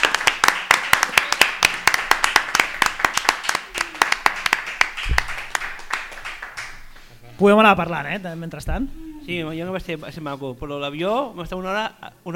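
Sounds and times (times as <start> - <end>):
audience applause: 0.0 - 7.1
speech: 7.4 - 12.3.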